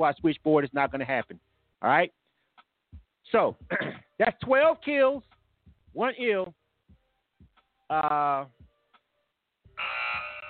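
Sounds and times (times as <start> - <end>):
speech: 0.0 - 2.2, 3.3 - 5.3, 6.0 - 6.6, 7.9 - 8.6
show timer electronic buzz: 9.7 - 10.4.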